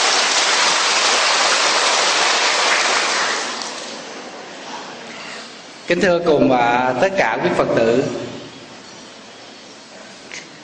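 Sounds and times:
audience applause: 0.0 - 3.9
speech: 5.9 - 8.3.

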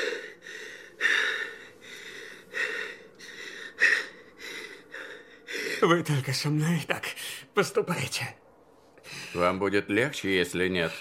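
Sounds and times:
man breathing heavily in pain: 0.0 - 6.0, 9.0 - 9.4
speech: 5.8 - 7.0, 7.6 - 8.4, 9.3 - 10.9.

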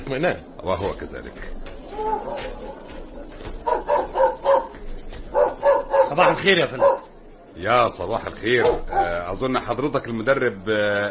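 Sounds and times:
speech: 0.1 - 2.9, 6.2 - 11.0
police dog barking: 2.0 - 3.0, 3.6 - 7.1, 8.6 - 9.1.

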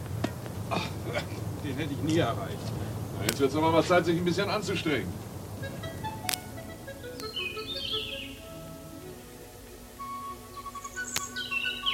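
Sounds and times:
low hum: 0.0 - 11.9
speech: 0.7 - 5.9
birds singing: 5.5 - 11.9.

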